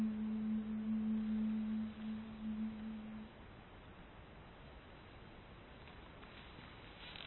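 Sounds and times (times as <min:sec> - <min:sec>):
soprano singing amen: 0:00.0 - 0:03.4.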